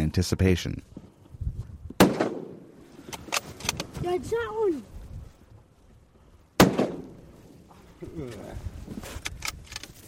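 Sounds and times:
speech: 0.1s - 0.9s, 4.2s - 5.0s, 8.1s - 9.3s
rifle shot: 2.0s - 2.7s, 6.6s - 7.2s.

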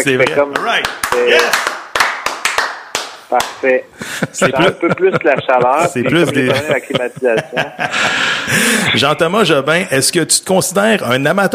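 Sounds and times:
speech: 0.0s - 1.7s, 3.3s - 11.5s
scattered hand claps: 0.2s - 3.6s
voices talking and laughing: 4.0s - 9.0s.

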